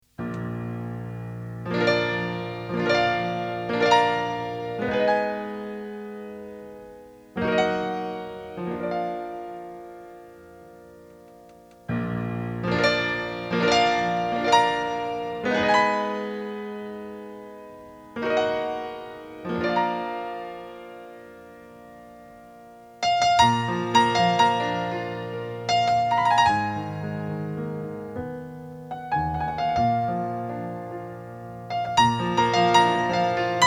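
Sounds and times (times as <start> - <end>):
solo piano: 0.0 - 33.6.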